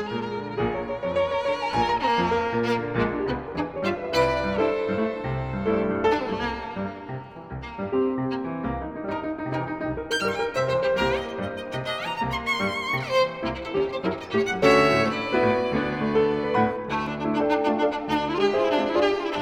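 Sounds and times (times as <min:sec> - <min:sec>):
piano prelude: 0:00.0 - 0:19.4.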